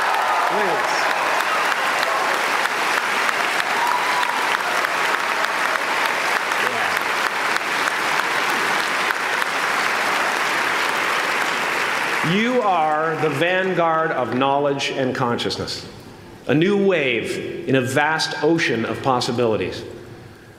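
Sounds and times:
audience applause: 0.0 - 14.4
speech: 0.5 - 1.0, 12.3 - 19.9.

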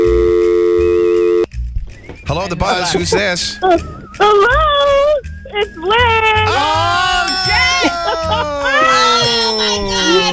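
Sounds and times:
telephone line droning electronic tone: 0.0 - 1.5
speech: 2.4 - 10.3
laughter: 2.6 - 5.0, 6.1 - 10.3.

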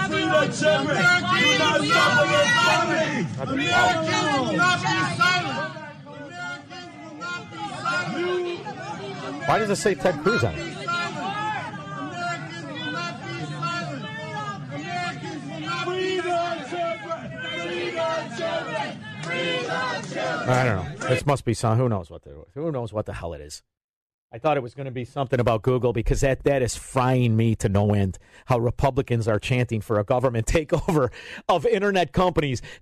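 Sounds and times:
crowd screaming and shouting: 0.0 - 21.1
speech: 0.4 - 5.5, 9.3 - 10.8, 19.3 - 32.7.

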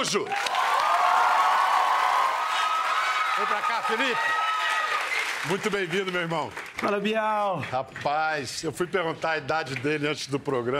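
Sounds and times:
speech: 0.0 - 0.6, 3.4 - 4.5, 5.4 - 10.7
audience cheering: 0.0 - 6.6
audience applause: 0.0 - 7.8.

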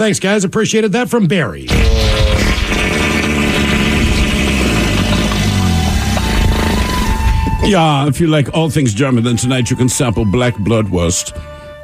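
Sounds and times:
speech: 0.0 - 3.0, 7.6 - 11.6
fart sound effect: 1.7 - 7.5.

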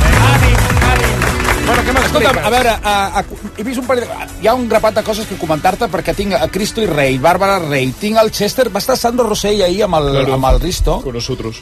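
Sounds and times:
audience applause: 0.0 - 2.8
speech: 2.2 - 11.5.

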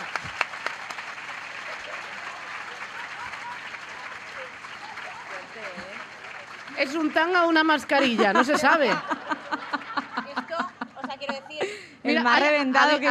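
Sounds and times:
audience applause: 0.0 - 10.4
laughter: 1.5 - 6.3, 7.7 - 13.0
speech: 6.8 - 9.2, 12.2 - 13.0.

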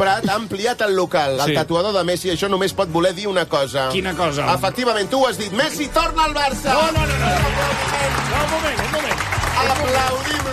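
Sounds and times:
speech: 0.1 - 10.5
applause: 6.7 - 10.5.

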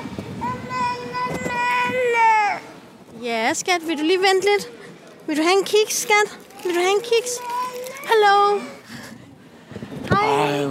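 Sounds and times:
small child crying out for food: 0.4 - 2.8, 6.5 - 8.8
speech: 3.3 - 8.8, 10.3 - 10.6.

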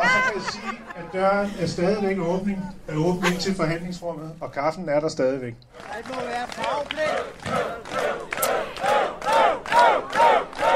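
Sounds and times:
laughter: 0.0 - 3.9
speech: 0.4 - 9.1
crowd of demonstrating citizens shouting chants in unison: 6.6 - 10.7.

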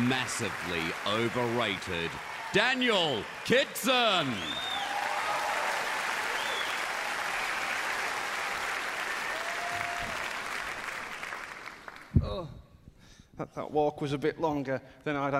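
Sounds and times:
audience applause: 0.0 - 12.1
speech: 0.1 - 4.7, 13.4 - 15.3.

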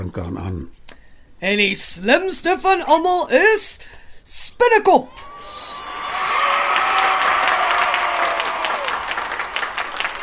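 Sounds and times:
speech: 0.0 - 0.8, 1.4 - 5.2
crowd clapping: 5.2 - 10.2.

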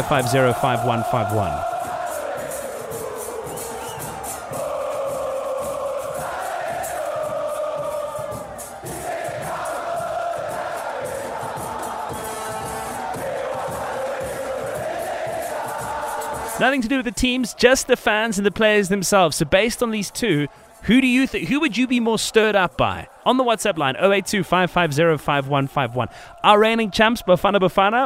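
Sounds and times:
speech: 0.0 - 1.7, 16.6 - 28.0
stadium crowd of football fans chanting a war cry: 0.0 - 28.0.

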